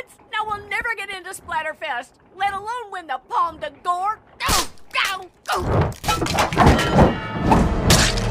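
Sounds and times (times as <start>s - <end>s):
speech: 0.8s - 4.5s, 5.2s - 7.3s
kick hitting a metal torture device: 5.6s - 8.3s
metal rattling and crashing: 5.9s - 8.3s.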